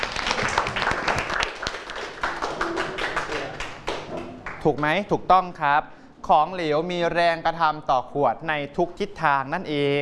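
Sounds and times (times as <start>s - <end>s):
students applauding: 0.0s - 5.0s
speech: 4.6s - 9.9s.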